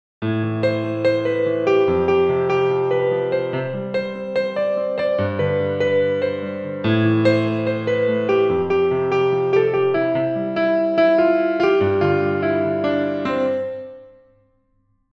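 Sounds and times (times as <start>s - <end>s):
piano: 0.2s - 14.9s.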